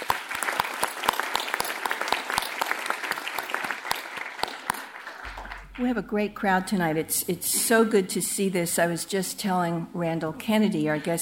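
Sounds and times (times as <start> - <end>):
audience clapping: 0.0 - 6.3
speech: 5.8 - 11.2.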